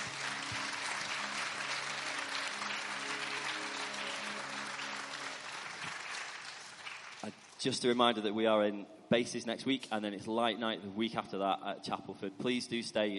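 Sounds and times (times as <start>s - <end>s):
audience applause: 0.0s - 7.6s
speech: 7.2s - 13.1s.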